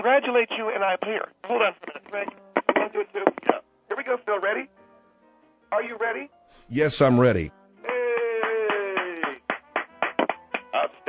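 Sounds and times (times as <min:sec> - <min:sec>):
speech: 0:00.0 - 0:04.8, 0:05.7 - 0:07.6
rhythmic clapping round-of-applause sound effect: 0:07.9 - 0:11.0.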